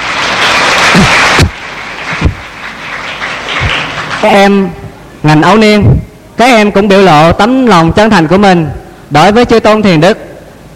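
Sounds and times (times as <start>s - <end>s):
audience applause: 0.0s - 4.3s
speech: 4.2s - 10.3s.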